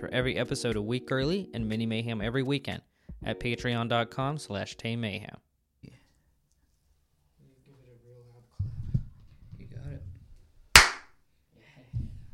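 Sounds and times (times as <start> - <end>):
speech: 0.0 - 5.4
hand clap: 10.8 - 11.1.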